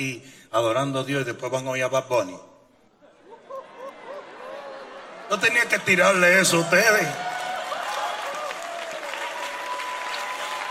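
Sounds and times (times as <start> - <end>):
speech: 0.0 - 2.5, 5.3 - 7.3
laughter: 3.0 - 6.4
audience applause: 3.9 - 10.6.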